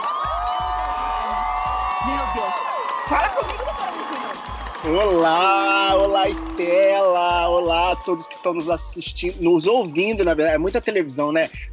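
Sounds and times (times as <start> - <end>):
high whoops: 0.0 - 9.8
crowd cheering and applauding: 0.0 - 10.2
rhythmic low thumping beat: 0.3 - 11.7
speech: 2.0 - 11.7.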